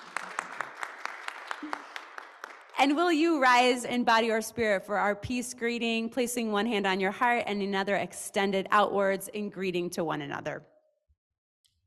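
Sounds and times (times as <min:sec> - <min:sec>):
audience applause for newcomers: 0:00.0 - 0:02.8
speech: 0:02.8 - 0:10.7.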